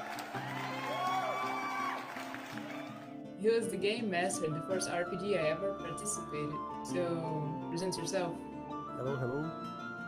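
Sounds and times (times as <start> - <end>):
clapping: 0.0 - 3.1
crowd cheering and whooping: 0.0 - 3.1
speech: 3.4 - 9.8.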